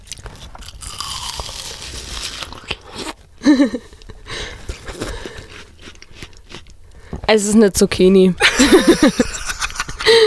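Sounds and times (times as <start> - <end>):
wet juicy biting and chewing of watermelon: 0.0 - 3.3, 3.9 - 7.2
speech: 3.5 - 4.0, 7.3 - 9.3
laughter: 8.4 - 10.2.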